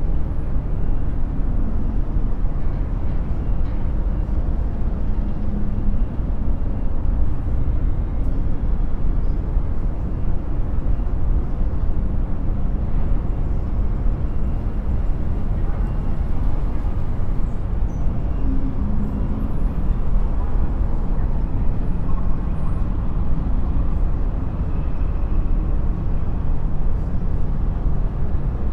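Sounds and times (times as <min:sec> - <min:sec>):
city skyline low rumble: 0:00.0 - 0:28.7.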